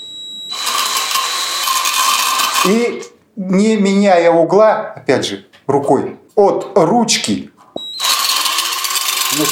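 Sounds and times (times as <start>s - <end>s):
cordless drill spinning a sharpening disc: 0.5s - 3.1s, 7.8s - 9.5s
speech: 2.6s - 7.5s, 9.4s - 9.5s.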